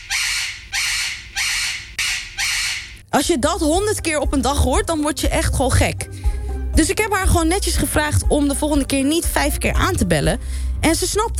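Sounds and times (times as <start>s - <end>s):
parrot screaming: 0.0s - 3.0s
speech: 3.1s - 6.2s, 6.8s - 11.3s.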